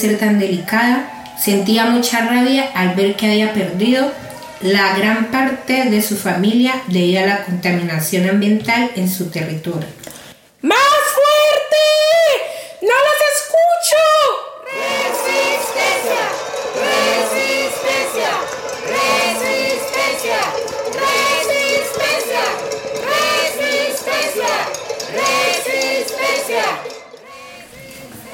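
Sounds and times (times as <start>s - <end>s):
speech: 0.0s - 10.0s, 10.6s - 12.1s, 12.8s - 14.4s
crowd clamoring and shouting in uproar: 14.6s - 28.3s.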